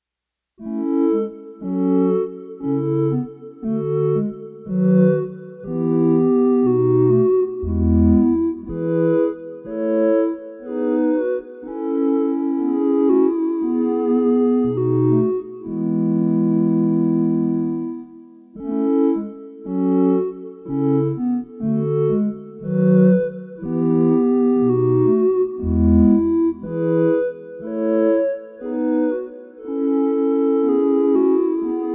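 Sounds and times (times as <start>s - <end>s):
chorale: 0.6s - 31.9s.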